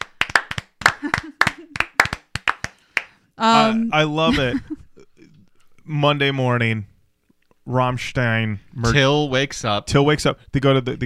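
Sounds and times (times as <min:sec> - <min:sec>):
applause: 0:00.0 - 0:03.2
speech: 0:03.4 - 0:04.8, 0:05.9 - 0:06.9, 0:07.7 - 0:11.0.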